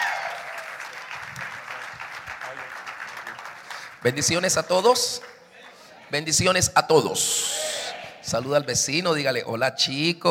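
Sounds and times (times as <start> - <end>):
audience applause: 0.0 - 5.7
speech: 4.0 - 5.3, 6.1 - 7.5, 8.3 - 10.2.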